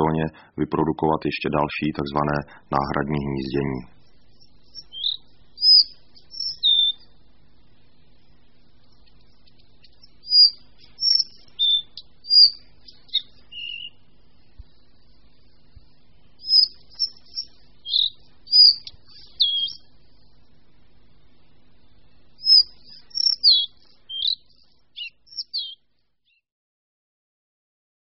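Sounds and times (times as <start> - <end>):
speech: 0.0 - 4.0
collared flycatcher song: 3.1 - 7.2, 9.0 - 14.0, 16.4 - 19.9, 22.4 - 26.4.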